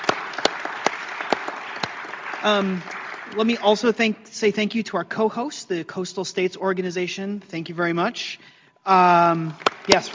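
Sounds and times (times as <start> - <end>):
audience applause for panelists: 0.0 - 3.9, 9.6 - 10.1
speech: 2.4 - 10.1.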